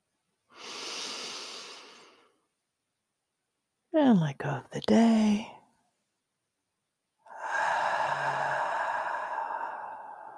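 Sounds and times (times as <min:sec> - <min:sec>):
person inhaling during a guided bedtime meditation: 0:00.5 - 0:02.4, 0:07.3 - 0:10.3
speech: 0:04.0 - 0:05.6.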